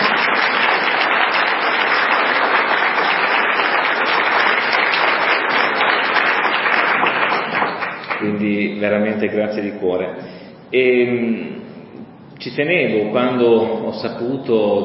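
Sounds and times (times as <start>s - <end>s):
audience applause: 0.0s - 8.2s
speech: 8.4s - 11.5s, 12.4s - 14.8s.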